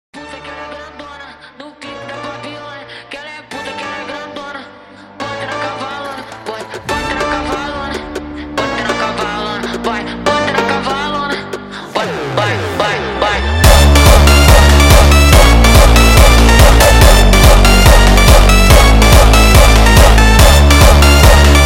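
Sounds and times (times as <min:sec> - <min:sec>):
sped-up jumpstyle music: 0:06.0 - 0:21.6.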